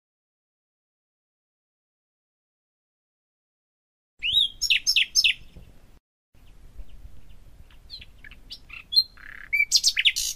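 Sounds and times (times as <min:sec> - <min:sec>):
nightingale singing varied phrases: 0:04.2 - 0:10.3.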